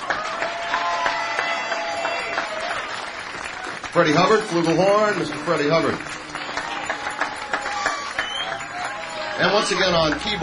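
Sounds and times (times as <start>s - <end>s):
live audience applause: 0.0s - 10.4s
faint crowd murmur: 3.1s - 10.4s
speech: 3.9s - 6.3s, 9.4s - 10.4s.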